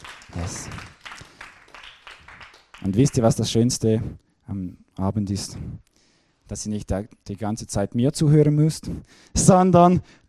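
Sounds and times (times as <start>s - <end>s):
audience applause: 0.0s - 3.4s
speech: 0.3s - 0.9s, 2.8s - 5.9s, 6.5s - 10.2s.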